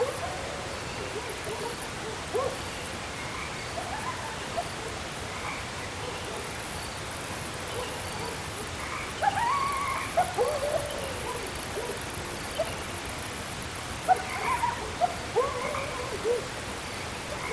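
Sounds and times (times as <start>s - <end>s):
insects in mountain ambience in close perspective: 0.0s - 17.5s
coyote in mountain ambience: 7.7s - 17.5s.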